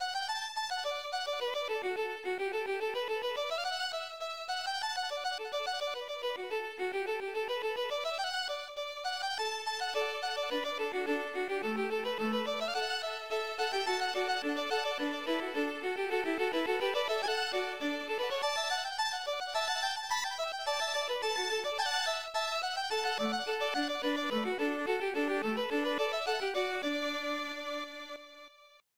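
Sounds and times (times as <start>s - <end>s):
little fiddle music: 0.0s - 28.8s.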